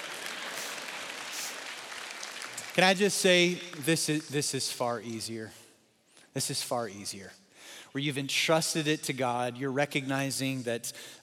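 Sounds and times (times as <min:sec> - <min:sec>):
audience clapping during a talk about faith in God: 0:00.0 - 0:04.5
speech: 0:02.8 - 0:05.6, 0:06.4 - 0:11.2.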